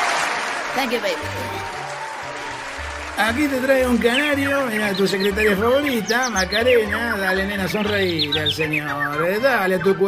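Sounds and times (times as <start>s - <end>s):
audience applause: 0.0s - 4.9s
speech: 0.7s - 1.9s, 3.2s - 10.0s.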